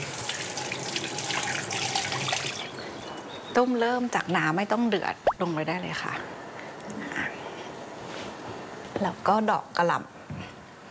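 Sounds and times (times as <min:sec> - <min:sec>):
running tap water splashing as small potatoes are rinsed: 0:00.0 - 0:02.8
speech: 0:03.6 - 0:07.0, 0:09.0 - 0:10.1.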